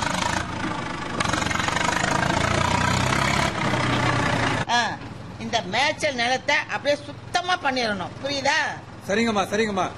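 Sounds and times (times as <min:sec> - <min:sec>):
JCB backhoe loader diesel engine running: 0:00.0 - 0:09.9
speech: 0:05.6 - 0:09.9.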